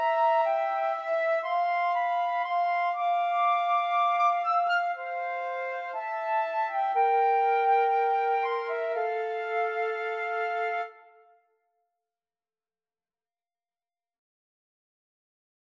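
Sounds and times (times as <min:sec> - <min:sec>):
flute trio playing a romance: 0:00.0 - 0:11.0.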